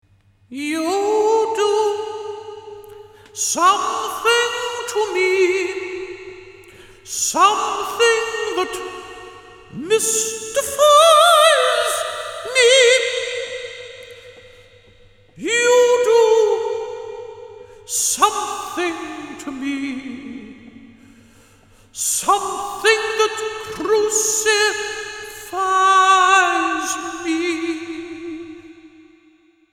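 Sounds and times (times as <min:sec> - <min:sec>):
singing: 0:00.5 - 0:14.4, 0:15.4 - 0:20.8, 0:22.0 - 0:29.0.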